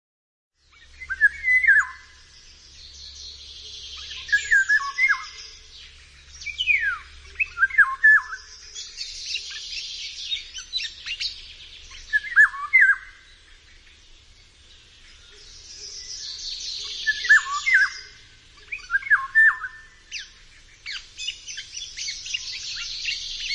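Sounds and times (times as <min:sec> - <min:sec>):
small birds twittering: 0:00.6 - 0:23.5
Eurasian golden oriole song: 0:01.0 - 0:02.0, 0:04.1 - 0:05.4, 0:12.2 - 0:13.0, 0:17.0 - 0:18.1, 0:18.8 - 0:19.9.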